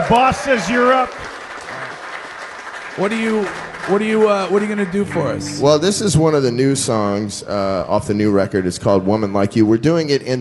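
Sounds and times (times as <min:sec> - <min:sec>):
audience applause: 0:00.0 - 0:06.3
speech: 0:00.1 - 0:01.3, 0:03.0 - 0:10.3.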